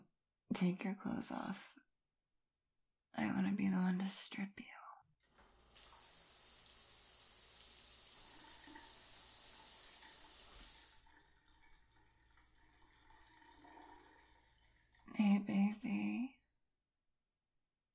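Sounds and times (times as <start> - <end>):
speech: 0.5 - 1.8, 3.2 - 4.8, 15.1 - 16.1
shower water running: 5.2 - 15.2.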